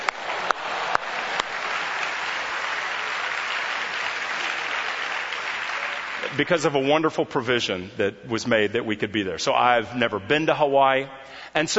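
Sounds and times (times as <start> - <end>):
audience applause: 0.0 - 6.5
speech: 6.4 - 11.7.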